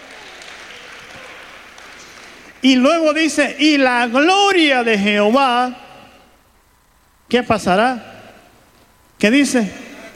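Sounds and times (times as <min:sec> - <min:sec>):
audience applause: 0:00.0 - 0:02.6
speech: 0:02.6 - 0:05.8, 0:07.3 - 0:08.1, 0:09.2 - 0:09.8.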